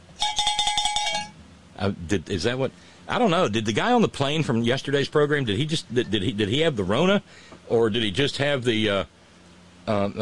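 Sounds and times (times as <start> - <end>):
cowbell being struck: 0.2 - 1.4
speech: 1.8 - 9.2, 9.8 - 10.2.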